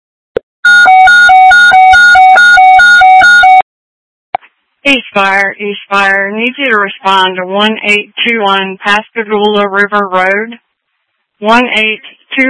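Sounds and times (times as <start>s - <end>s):
fire dispatch alert tones: 0.7s - 3.6s
speech: 4.9s - 10.7s, 11.4s - 12.4s.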